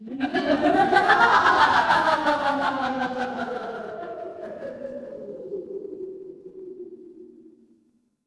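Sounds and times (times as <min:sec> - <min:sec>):
crowd laughing: 0:00.0 - 0:05.0.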